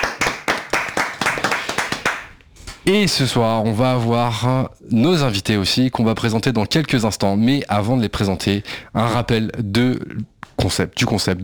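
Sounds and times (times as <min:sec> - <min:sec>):
single person clapping during a French talk show: 0:00.0 - 0:02.8
speech: 0:02.9 - 0:11.4.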